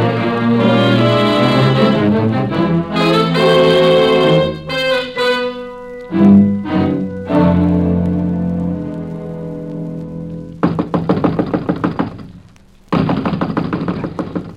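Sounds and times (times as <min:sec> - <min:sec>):
sustained musical tone: 0:00.0 - 0:10.7
knuckles knocking on a wooden door: 0:10.6 - 0:12.3, 0:13.0 - 0:14.5.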